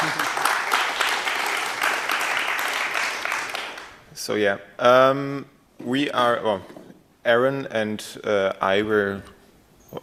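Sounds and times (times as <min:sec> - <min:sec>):
audience clapping: 0:00.0 - 0:04.0
speech: 0:04.2 - 0:10.0.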